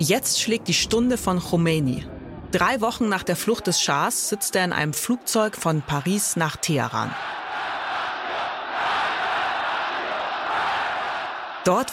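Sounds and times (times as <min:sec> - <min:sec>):
speech: 0:00.0 - 0:07.4, 0:11.6 - 0:11.9
huge crowd cheering in the streets: 0:03.3 - 0:11.9.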